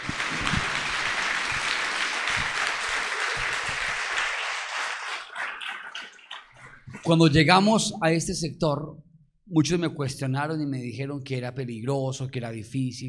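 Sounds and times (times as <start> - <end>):
church audience applause: 0.0 - 6.6
speech: 7.1 - 13.0.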